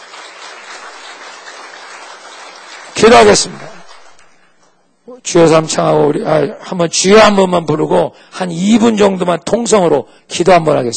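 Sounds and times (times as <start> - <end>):
audience clapping hands: 0.0 - 4.6
speech: 3.0 - 3.7, 5.2 - 10.9.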